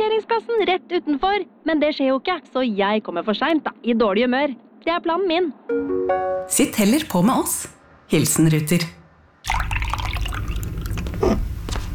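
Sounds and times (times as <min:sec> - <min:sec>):
speech: 0:00.2 - 0:09.9
liquid poured into a glass with bubbly splashing: 0:09.5 - 0:11.2.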